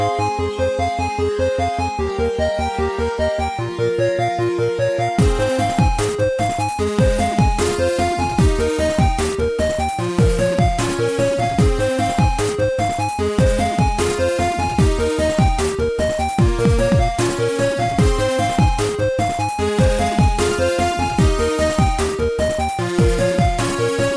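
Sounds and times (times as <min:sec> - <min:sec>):
chiptune music: 0:00.0 - 0:24.1.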